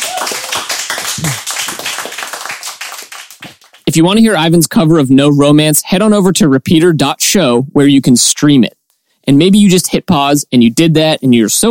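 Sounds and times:
audience applause: 0.0 - 3.8
speech: 4.0 - 11.6.

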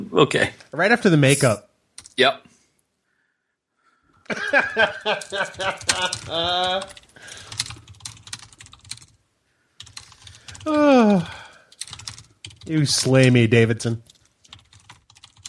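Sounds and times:
speech: 0.1 - 2.5, 4.3 - 7.4, 10.6 - 11.4, 12.7 - 14.1
typing on a loud computer keyboard: 2.0 - 2.2, 4.9 - 9.2, 9.8 - 13.4, 14.0 - 15.4
laughter: 4.3 - 6.9.

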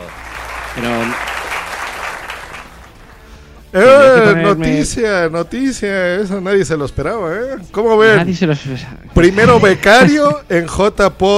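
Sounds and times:
loud applause: 0.0 - 3.1
speech: 0.8 - 1.3, 3.7 - 11.3
laughter: 9.2 - 10.5.

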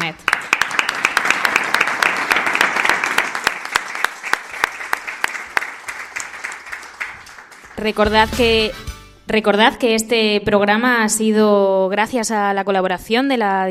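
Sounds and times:
audience applause: 0.2 - 8.1
speech: 7.8 - 13.6.

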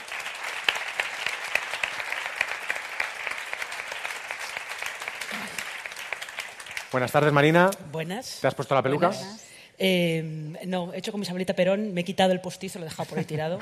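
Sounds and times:
audience applause: 0.0 - 7.6
speech: 6.9 - 13.6.

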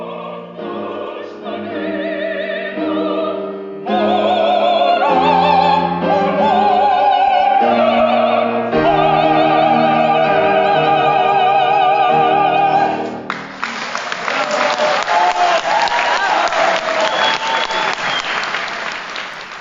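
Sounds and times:
orchestral and vocal notes ending an opera aria at a Croatian opera evening in Sydney: 0.0 - 13.6
audience ovation at a Croatian opera evening in Sydney: 13.2 - 19.5.

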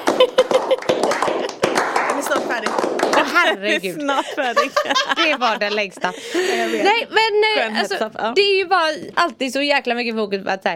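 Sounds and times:
scattered hand claps: 0.0 - 4.2
laughter: 0.0 - 8.1
speech: 2.6 - 10.7.

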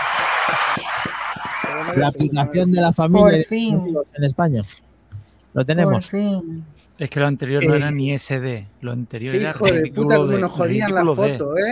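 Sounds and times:
applause: 0.0 - 2.2
speech: 1.9 - 4.9, 5.6 - 11.7.

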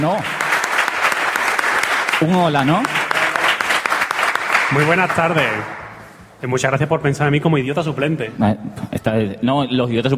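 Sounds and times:
speech: 0.0 - 0.4, 2.2 - 3.0, 4.7 - 5.8, 6.4 - 10.1
crowd applause: 0.0 - 6.0.

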